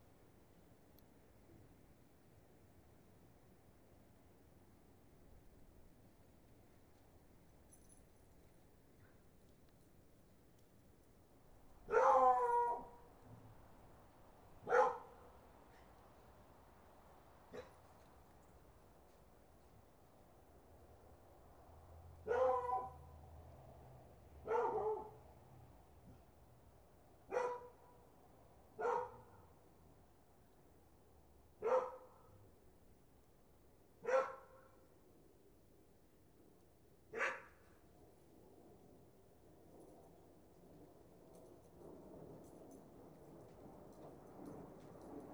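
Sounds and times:
dog barking: 11.9 - 13.0, 14.6 - 15.3, 22.2 - 23.0, 24.4 - 25.2, 27.3 - 27.8, 28.8 - 29.3, 31.6 - 32.2, 34.0 - 34.7, 37.1 - 37.6.

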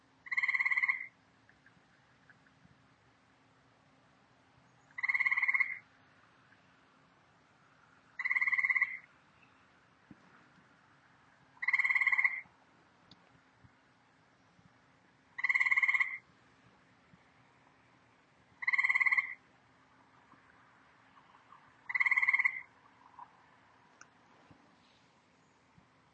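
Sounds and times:
grey tree frog in the ornamental gardens of an experimental farm in Ottawa Canada: 0.2 - 2.6, 4.8 - 5.9, 8.1 - 9.5, 11.5 - 12.6, 15.3 - 16.3, 18.6 - 19.5, 20.1 - 24.2.

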